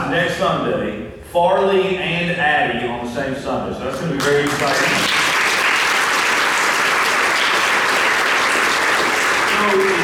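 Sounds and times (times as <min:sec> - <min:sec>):
speech: 0:00.1 - 0:05.1
audience applauding: 0:04.0 - 0:10.0.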